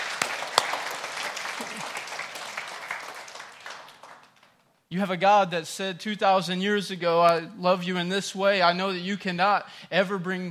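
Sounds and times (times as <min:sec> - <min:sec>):
audience clapping hands in praise: 0:00.0 - 0:04.8
speech: 0:04.9 - 0:10.4.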